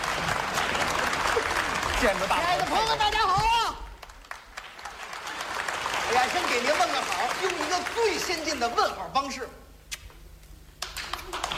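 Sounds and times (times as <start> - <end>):
large audience applause: 0.0 - 9.0, 10.8 - 11.5
speech: 2.0 - 3.6, 6.2 - 9.6.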